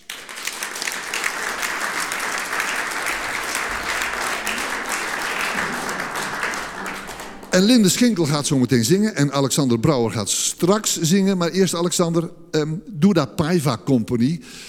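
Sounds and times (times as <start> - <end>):
audience applause: 0.0 - 8.6
speech: 7.6 - 14.6.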